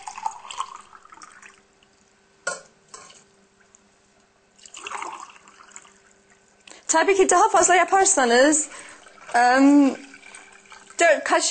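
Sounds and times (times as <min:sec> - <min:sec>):
water being poured into a cooking pot: 0:00.0 - 0:02.0, 0:04.6 - 0:06.4, 0:07.8 - 0:11.4
cup or utensil clinking: 0:02.4 - 0:03.2
speech: 0:06.9 - 0:10.1, 0:11.0 - 0:11.4.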